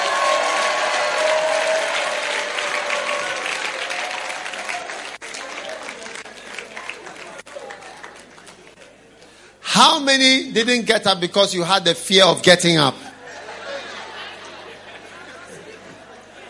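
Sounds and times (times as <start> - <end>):
audience clapping: 0.0 - 9.1
speech: 9.8 - 13.0
laughter: 13.0 - 16.4.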